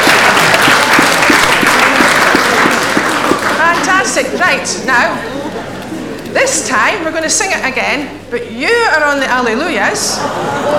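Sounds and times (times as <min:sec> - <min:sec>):
audience applause: 0:00.0 - 0:06.3
laughter: 0:00.0 - 0:06.9, 0:09.8 - 0:10.7
speech: 0:04.2 - 0:05.4, 0:06.3 - 0:10.7.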